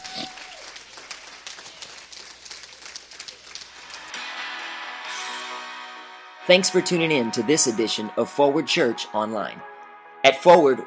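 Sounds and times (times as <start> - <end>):
audience clapping hands: 0.0 - 5.1
bright sustained musical tone: 4.0 - 10.8
speech: 6.5 - 10.8.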